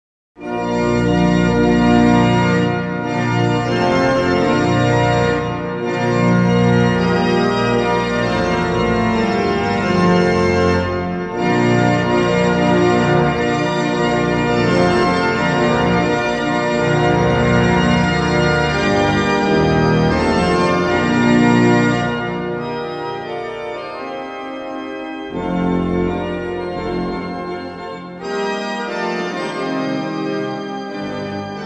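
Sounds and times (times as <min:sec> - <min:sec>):
organ: 0:00.4 - 0:31.6.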